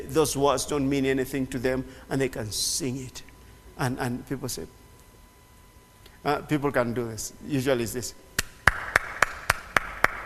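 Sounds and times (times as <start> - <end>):
speech: 0.1 - 4.8, 6.2 - 8.2
polite clapping: 8.4 - 10.2.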